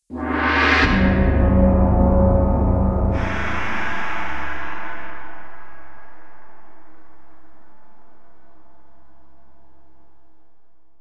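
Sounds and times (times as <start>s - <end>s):
breathing gong of sword: 0.2s - 9.0s.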